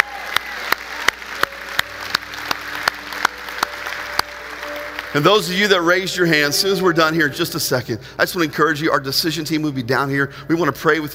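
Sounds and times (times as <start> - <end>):
audience cheering and applauding: 0.0 - 6.0
speech: 5.2 - 11.1.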